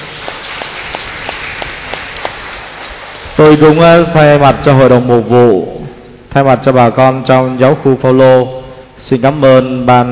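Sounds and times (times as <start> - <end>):
audience applause: 0.0 - 3.7
sharper claps at a regular rhythm: 0.0 - 4.5
speech: 3.4 - 10.1.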